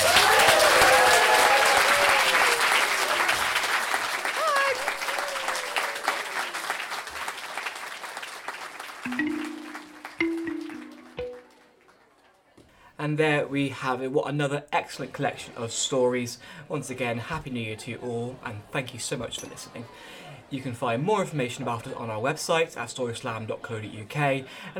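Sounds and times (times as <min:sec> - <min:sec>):
audience applause at a year-end storytelling gathering: 0:00.0 - 0:12.4
speech: 0:13.1 - 0:24.7.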